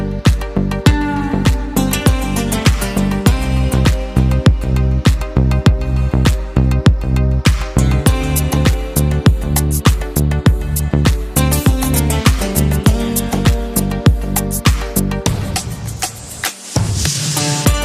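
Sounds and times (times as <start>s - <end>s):
tropical guitar music: 0.0s - 15.5s, 17.4s - 17.8s.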